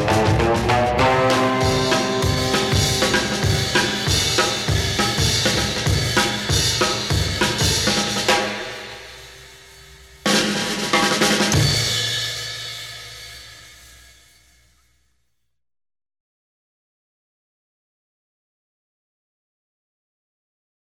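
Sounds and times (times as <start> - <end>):
drums: 0.0 - 14.9.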